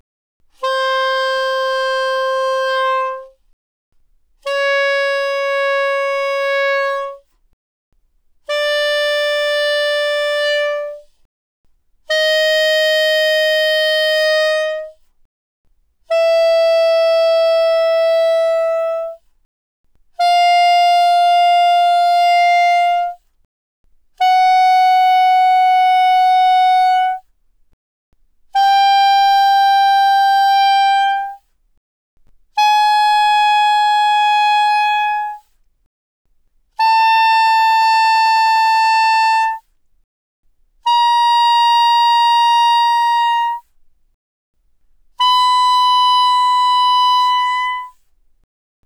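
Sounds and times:
soprano saxophone notes without vibrato, fortissimo, C5 to B5: 0.6 - 3.4, 4.4 - 7.3, 8.5 - 11.1, 12.1 - 15.1, 16.1 - 19.2, 20.2 - 23.2, 24.2 - 27.2, 28.5 - 31.4, 32.5 - 35.5, 36.8 - 39.6, 40.8 - 43.7, 45.1 - 48.0.

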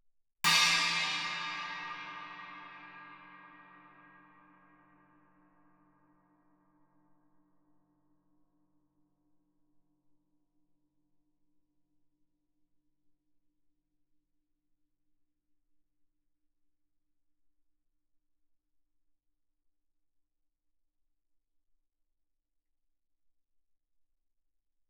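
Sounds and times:
Chinese stick on suspended cymbals played fortissimo: 0.5 - 4.4.

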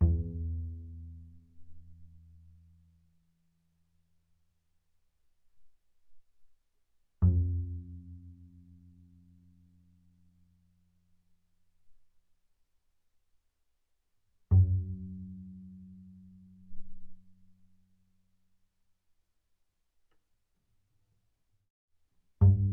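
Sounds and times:
double bass pizzicato fortissimo on the A string: 0.0 - 2.0, 7.2 - 9.0, 14.5 - 17.0, 22.4 - 22.7.

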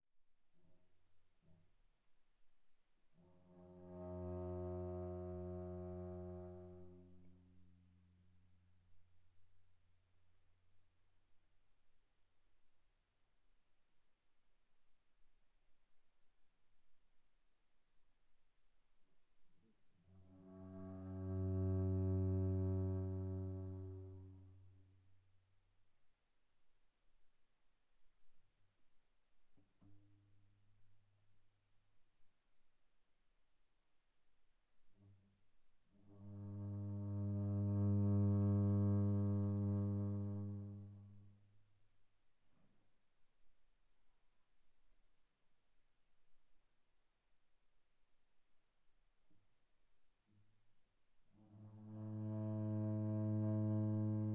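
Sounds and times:
viola bowed very softly on the G string: 3.3 - 8.0, 20.1 - 24.8, 35.9 - 41.5, 51.4 - 54.3.

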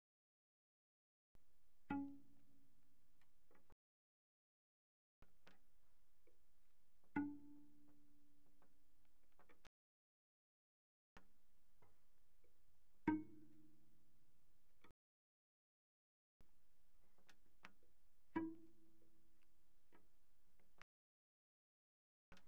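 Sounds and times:
very soft cello pizzicato on the G string, D flat 4 and G4: 1.4 - 3.8, 5.3 - 9.6, 11.2 - 14.9, 16.4 - 20.8.

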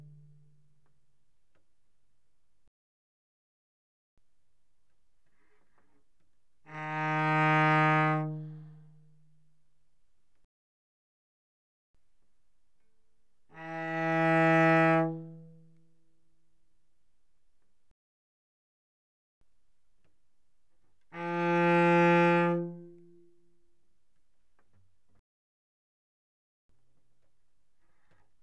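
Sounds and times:
cello arco mezzo forte on the G string: 0.0 - 0.7, 5.6 - 9.5, 13.4 - 15.9, 21.0 - 23.6.

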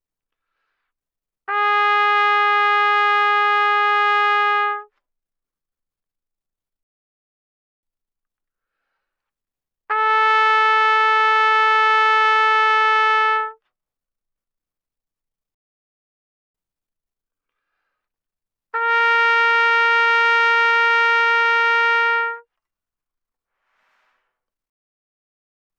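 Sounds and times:
trumpet notes C4 to B4 mezzo-forte without vibrato: 1.5 - 4.9, 9.9 - 13.6, 18.7 - 22.5.

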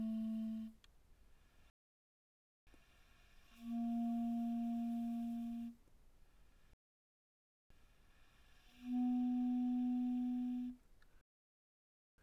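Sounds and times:
soft B-flat clarinet notes from D3 to B3: 0.0 - 0.8, 3.5 - 5.8, 8.7 - 10.8.

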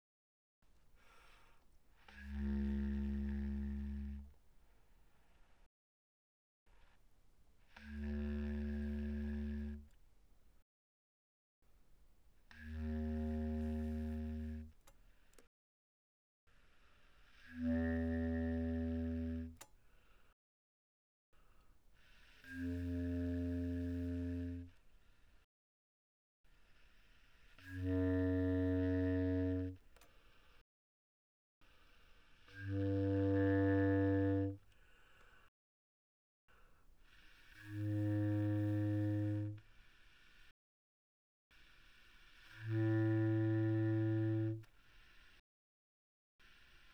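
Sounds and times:
bass clarinet playing pianissimo low notes: 2.1 - 4.4, 7.7 - 9.9, 12.5 - 14.8, 17.4 - 19.6, 22.2 - 24.8, 27.6 - 29.8, 32.5 - 34.7, 37.6 - 39.6, 42.4 - 44.7.

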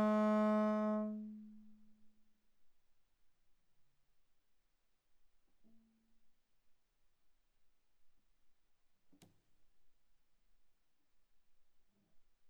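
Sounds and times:
viola bowed arco on the A string: 0.0 - 1.3.

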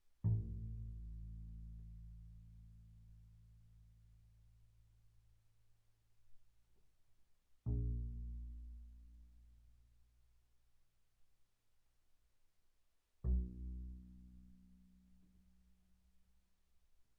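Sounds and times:
double bass pizzicato on A string pianissimo: 0.2 - 2.9, 7.7 - 9.5, 13.2 - 14.7.

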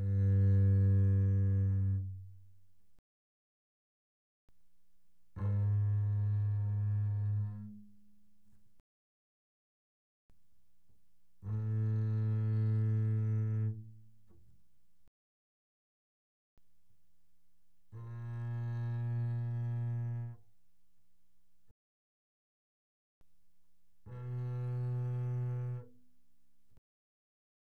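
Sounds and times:
double bass bowed arco mezzo forte notes: 0.0 - 2.4, 5.4 - 8.0, 11.4 - 14.0, 17.9 - 20.4, 24.0 - 25.9.

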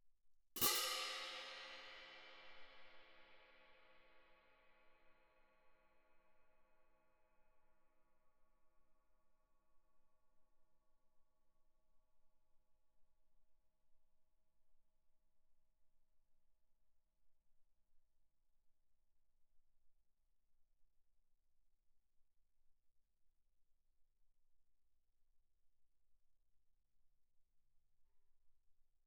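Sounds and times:
medium heavy orchestral crash cymbals: 0.6 - 3.3.

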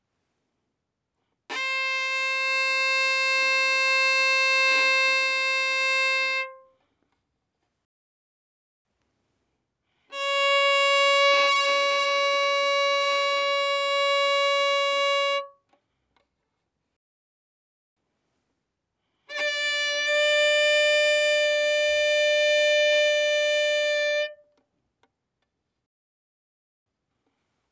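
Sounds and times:
violin arco fortissimo on the A string: 1.5 - 6.6, 10.1 - 15.5, 19.3 - 24.4.

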